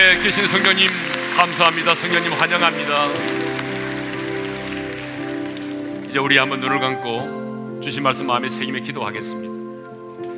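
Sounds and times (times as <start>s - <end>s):
speech: 0.0s - 3.4s, 6.1s - 9.5s
audience applause: 0.0s - 6.7s.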